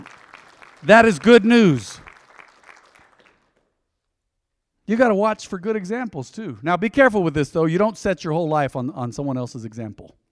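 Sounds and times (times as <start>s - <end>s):
crowd of people clapping: 0.0s - 3.7s
speech: 0.8s - 1.9s, 4.9s - 10.2s.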